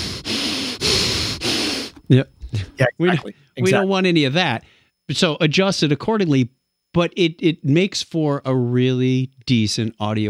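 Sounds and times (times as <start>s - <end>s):
voice imitating breathing out into a microphone: 0.0s - 3.5s
short voiced grunt: 2.0s - 3.3s
speech: 2.1s - 10.2s.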